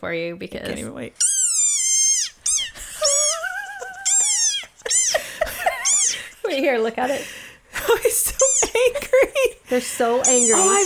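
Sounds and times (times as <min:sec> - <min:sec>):
speech: 0:00.0 - 0:01.3, 0:06.5 - 0:10.8
small frog squeaking calls: 0:01.2 - 0:05.2, 0:05.8 - 0:06.2, 0:10.2 - 0:10.8.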